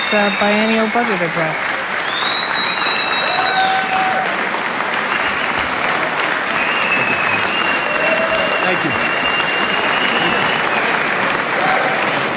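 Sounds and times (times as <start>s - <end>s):
large crowd applause: 0.0s - 12.3s
speech: 0.1s - 1.7s, 8.7s - 9.1s
faint whistles: 2.0s - 3.5s, 6.6s - 11.0s.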